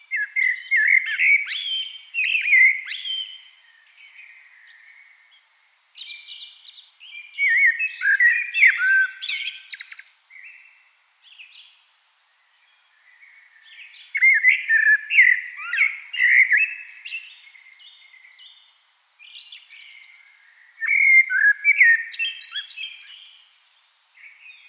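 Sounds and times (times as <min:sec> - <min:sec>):
other birds calling: 0:00.0 - 0:11.7, 0:13.0 - 0:24.6
Eurasian blackbird song: 0:00.0 - 0:24.6.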